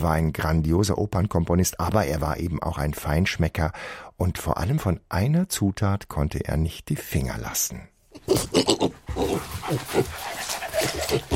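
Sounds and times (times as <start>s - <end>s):
speech: 0.0s - 8.9s, 9.7s - 10.2s
dog sniffing and panting: 9.0s - 11.3s.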